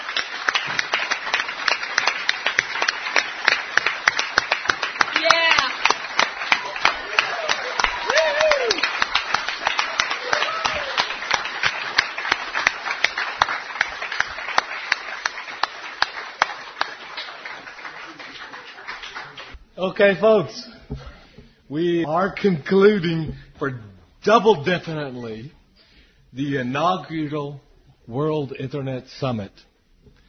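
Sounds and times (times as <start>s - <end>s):
audience clapping: 0.0s - 20.1s
speech: 20.0s - 21.0s, 21.7s - 25.6s, 26.3s - 29.7s.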